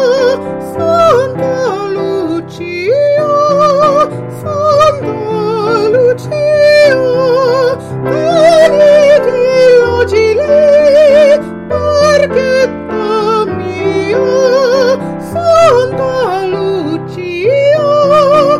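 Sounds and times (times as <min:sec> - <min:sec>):
person singing: 0:00.0 - 0:18.5
piano: 0:00.0 - 0:18.5.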